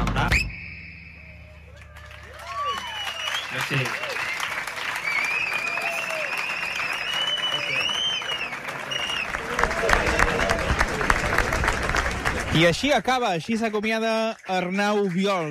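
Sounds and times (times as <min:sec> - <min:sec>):
audience applause: 0:01.6 - 0:15.5
speech: 0:03.6 - 0:04.1, 0:12.6 - 0:15.5
audience murmur: 0:06.1 - 0:12.6.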